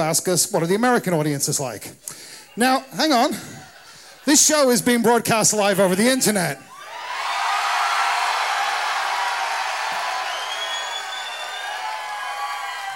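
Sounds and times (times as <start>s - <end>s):
speech: 0.0s - 6.7s
laughter: 3.1s - 5.0s
polite audience applause: 6.7s - 12.9s.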